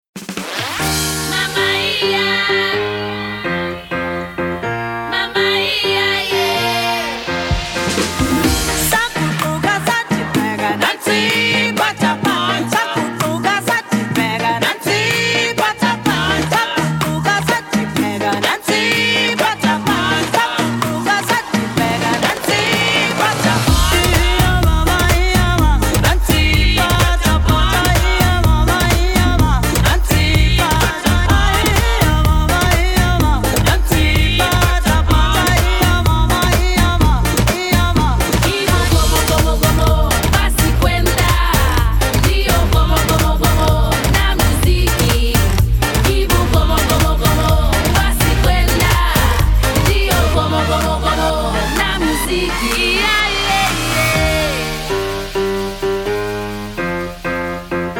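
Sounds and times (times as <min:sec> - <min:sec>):
cha cha cha music: 0:00.2 - 0:57.9.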